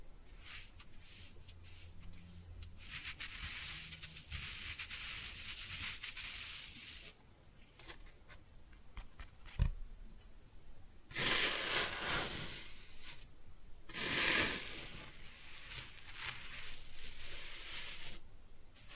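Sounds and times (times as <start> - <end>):
kinetic sand cut and scooped: 0.4 - 7.1, 11.1 - 13.2, 13.9 - 18.2.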